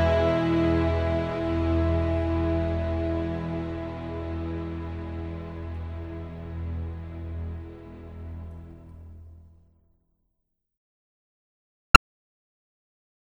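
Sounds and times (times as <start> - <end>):
chorale: 0.0 - 7.4.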